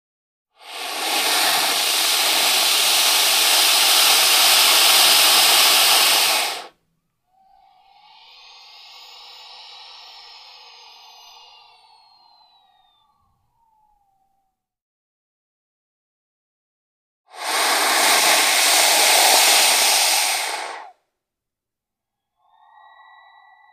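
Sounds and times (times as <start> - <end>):
python hissing: 0.6 - 6.8, 7.4 - 13.6, 17.3 - 21.0, 22.4 - 23.7.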